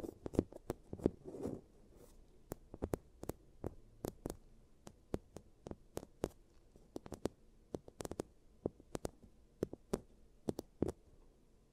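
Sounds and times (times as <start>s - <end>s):
low quiet hum: 0.0s - 11.7s
soft rustling scrape: 0.9s - 2.4s
giant teeth treatment clicks and taps: 2.5s - 6.4s, 7.0s - 11.0s.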